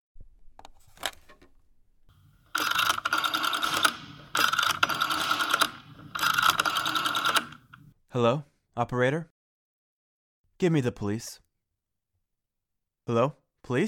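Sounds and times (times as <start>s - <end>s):
rotary telephone being dialed: 2.1s - 7.9s
speech: 8.2s - 9.4s, 10.6s - 11.4s, 13.1s - 13.8s.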